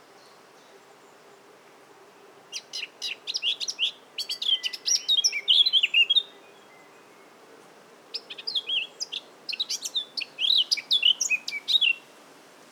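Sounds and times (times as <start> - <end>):
Eurasian blackcap song: 2.5 - 6.3, 8.1 - 12.0.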